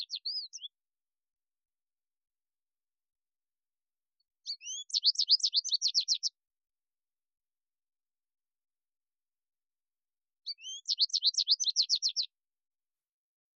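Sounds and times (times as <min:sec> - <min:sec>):
American Goldfinch singing: 0:00.0 - 0:00.8, 0:04.4 - 0:06.4, 0:10.4 - 0:12.3.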